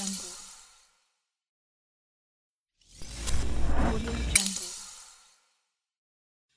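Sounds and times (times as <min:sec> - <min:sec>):
glitch sounds: 0:03.0 - 0:04.6.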